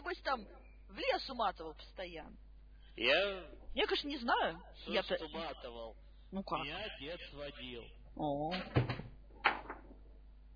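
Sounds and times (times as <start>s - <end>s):
speech: 0.1s - 2.4s, 3.0s - 9.0s
knocking on a door: 8.6s - 9.9s.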